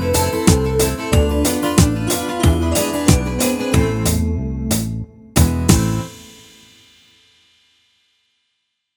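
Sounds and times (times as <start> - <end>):
melody: 0.0 - 6.2.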